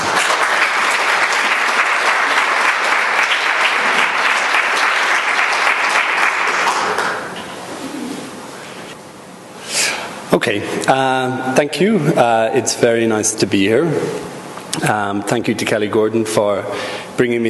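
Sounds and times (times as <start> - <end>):
audience applause: 0.0 - 7.4
speech: 10.4 - 17.4.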